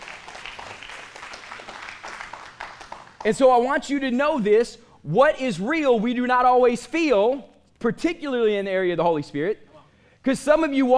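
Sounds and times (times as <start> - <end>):
audience hand clapping: 0.0 - 3.6
speech: 3.2 - 9.6, 10.2 - 10.9.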